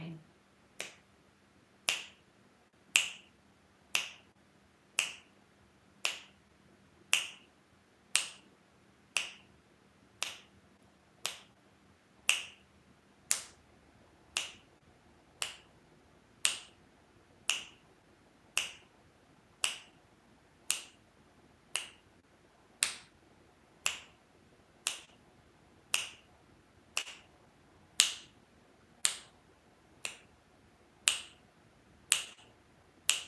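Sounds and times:
finger clicks keeping a steady beat: 0.8s - 1.1s, 1.8s - 2.2s, 2.9s - 4.3s, 5.0s - 5.4s, 6.0s - 6.4s, 7.1s - 7.5s, 8.1s - 8.5s, 9.1s - 9.5s, 10.2s - 10.6s, 11.2s - 11.6s, 12.2s - 12.7s, 13.3s - 13.6s, 14.3s - 14.7s, 15.4s - 15.7s, 16.4s - 16.8s, 17.4s - 17.8s, 18.5s - 18.9s, 19.6s - 20.0s, 20.7s - 21.0s, 21.7s - 22.0s, 22.8s - 23.1s, 23.8s - 24.2s, 24.8s - 25.2s, 25.9s - 26.3s, 26.9s - 27.3s, 28.0s - 28.4s, 29.0s - 29.4s, 30.0s - 30.3s, 31.0s - 31.4s, 32.1s - 33.2s.

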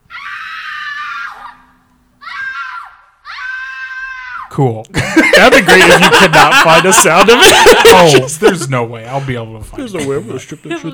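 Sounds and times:
stock children's screams from the film Hook: 0.0s - 4.5s
speech: 4.6s - 10.9s
laughter: 4.9s - 10.9s.

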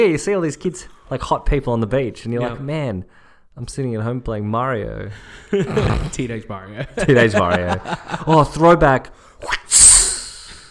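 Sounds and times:
speech: 0.0s - 9.6s
laughter: 6.8s - 8.5s
voice imitating a whip crack: 9.4s - 10.6s.

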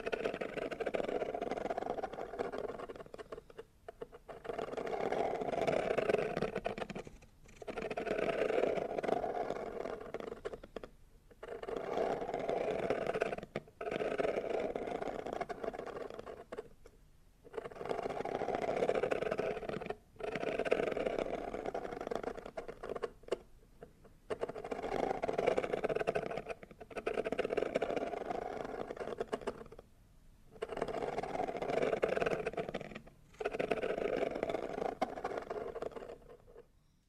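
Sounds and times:
scratching and rubbing on cardboard boxes: 0.0s - 16.8s, 17.5s - 23.5s, 24.3s - 29.8s, 30.6s - 36.7s.

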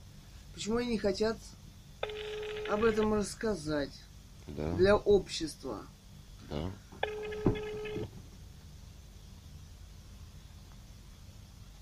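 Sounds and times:
speech: 0.6s - 1.6s, 2.7s - 6.8s
telephone ring tone through a phone line: 2.0s - 3.0s, 7.0s - 8.1s.

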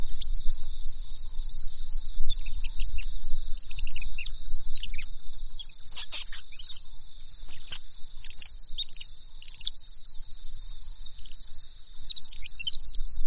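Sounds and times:
bird singing in high twittering phrases: 0.0s - 3.0s, 3.6s - 9.7s
steady high insect-like buzzing: 0.0s - 13.2s.

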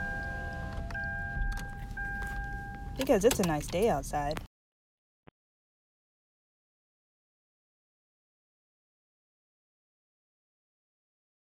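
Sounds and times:
electric car windows rolling down: 0.0s - 3.0s
speech: 3.0s - 4.5s.

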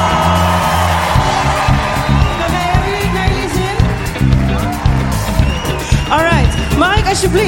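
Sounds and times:
audience cheering and whooping for a band's vocalist at a live show: 0.0s - 7.4s
rhythmic low thumps of music: 0.0s - 7.4s
speech: 7.2s - 7.4s.

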